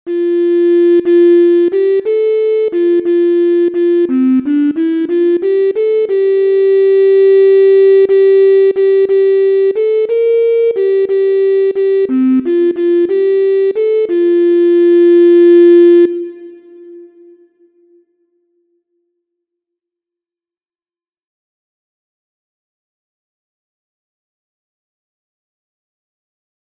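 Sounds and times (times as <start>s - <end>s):
MIDI music: 0.1s - 18.1s.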